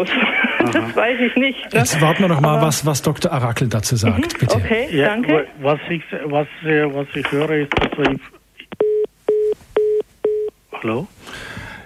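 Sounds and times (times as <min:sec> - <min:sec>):
laughter: 0:00.0 - 0:02.6
speech: 0:00.0 - 0:08.4, 0:10.8 - 0:11.5
telephone busy tone after a caller hangs up: 0:08.8 - 0:10.5.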